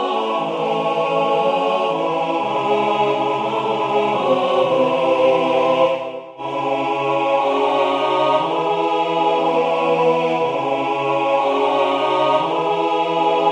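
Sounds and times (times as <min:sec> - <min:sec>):
MIDI SATB a cappella choir: 0:00.0 - 0:13.4.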